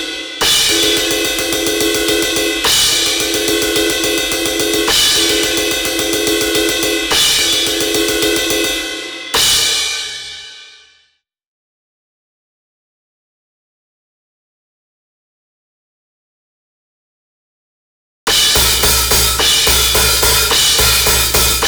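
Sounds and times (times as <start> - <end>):
cymbals: 0.0 - 10.6, 18.3 - 21.6
drums: 0.0 - 11.0, 18.3 - 21.6.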